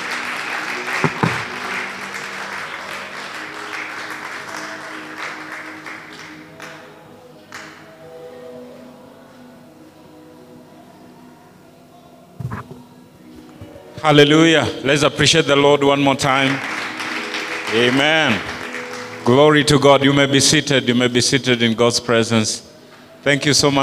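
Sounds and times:
church congregation clapping to welcome a preacher back: 0:00.0 - 0:08.1, 0:14.9 - 0:21.6
speech: 0:14.0 - 0:16.7, 0:17.7 - 0:18.5, 0:19.2 - 0:23.8.

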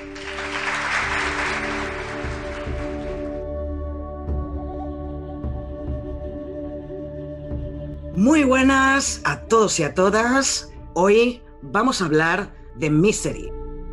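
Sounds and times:
applause: 0:00.0 - 0:03.4
speech: 0:08.2 - 0:13.6.

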